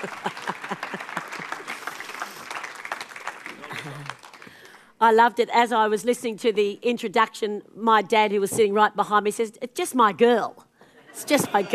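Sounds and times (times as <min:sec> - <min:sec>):
speech: 0:00.0 - 0:01.6, 0:03.8 - 0:04.2, 0:05.0 - 0:11.7
laughter: 0:00.0 - 0:02.4, 0:11.1 - 0:11.7
audience applause welcoming a motivational speaker: 0:00.0 - 0:04.8.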